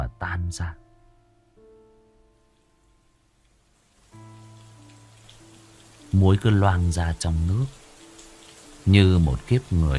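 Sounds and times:
speech: 0.4 - 0.8, 6.1 - 7.8, 8.8 - 9.9
heavy rain falling: 3.7 - 9.9.

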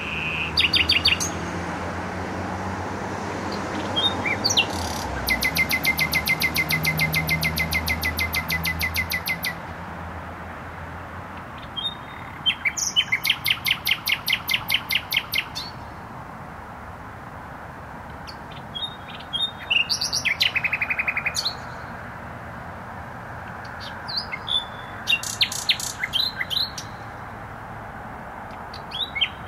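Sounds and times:
nightingale singing: 0.0 - 1.6, 3.5 - 9.6, 11.4 - 16.1, 18.0 - 22.0, 23.4 - 27.2, 28.4 - 29.4
traffic hum: 0.0 - 29.4.

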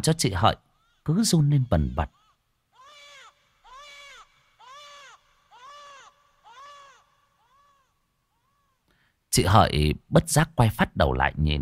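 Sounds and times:
speech: 0.0 - 2.2, 9.3 - 11.6
eerie crying by a desolate riverbank: 0.9 - 8.9.

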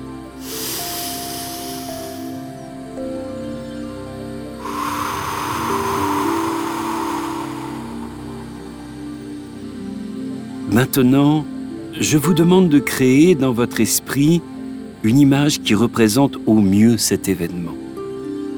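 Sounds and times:
deep breathing in through the nose and out through the mouth: 0.0 - 2.9, 4.6 - 9.6
soft sustained tones: 0.0 - 10.2
speech: 10.8 - 17.8.

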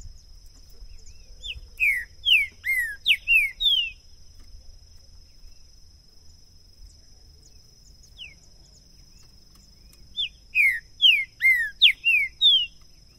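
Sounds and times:
green-winged saltator song of rich downslurred whistles: 0.0 - 4.1, 6.9 - 13.1.

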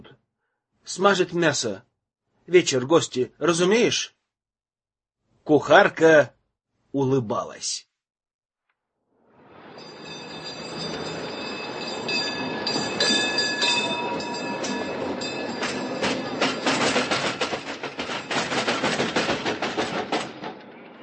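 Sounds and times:
speech: 0.9 - 1.9, 2.5 - 4.2, 5.5 - 7.9
tram rolling on rails: 9.4 - 21.0
tram wheels clattering over track: 10.0 - 21.0.

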